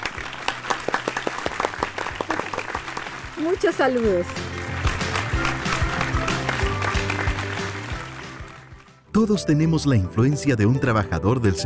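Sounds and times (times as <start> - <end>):
audience applause: 0.0 - 8.8
speech: 3.4 - 4.5, 9.2 - 11.6.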